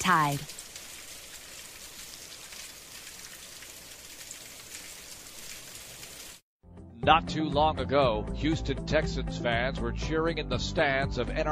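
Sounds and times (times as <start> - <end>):
speech: 0.1 - 0.6, 7.0 - 11.5
bacon sizzling and spitting in pan: 0.2 - 6.4.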